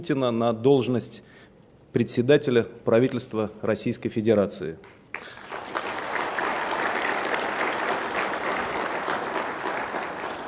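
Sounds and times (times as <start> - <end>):
speech: 0.0 - 5.4
applause in parliament: 5.1 - 10.4.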